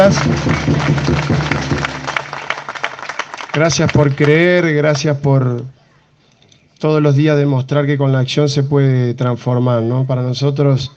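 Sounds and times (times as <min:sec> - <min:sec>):
crowd applauding during a speech at a public civic event: 0:00.0 - 0:04.5
speech: 0:00.1 - 0:01.1, 0:03.6 - 0:05.8, 0:06.8 - 0:10.9.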